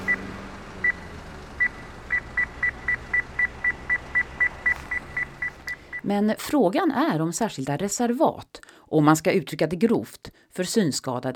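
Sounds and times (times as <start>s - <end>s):
accessible pedestrian signal beeping: 0.0s - 6.1s
constant rumble of traffic noise: 0.0s - 6.4s
speech: 6.1s - 11.3s.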